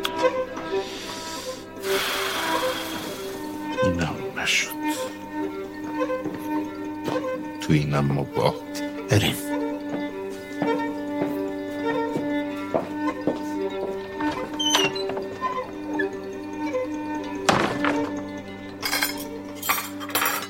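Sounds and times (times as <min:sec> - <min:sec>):
steady tonal background: 0:00.0 - 0:20.4
speech: 0:07.7 - 0:09.6
dishware clinking as rice is served onto a plate: 0:17.4 - 0:20.4.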